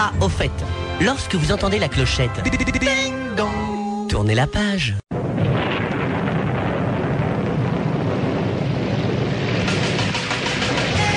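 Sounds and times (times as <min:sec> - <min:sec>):
speech: 0:00.0 - 0:05.1
pouring rain: 0:05.1 - 0:11.1
thunder as rain starts: 0:05.1 - 0:11.1.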